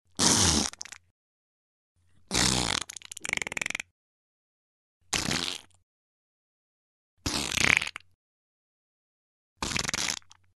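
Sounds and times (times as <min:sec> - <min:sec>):
fart: 0:00.1 - 0:01.0, 0:02.3 - 0:03.9, 0:05.1 - 0:05.8, 0:07.2 - 0:08.2, 0:09.6 - 0:10.5.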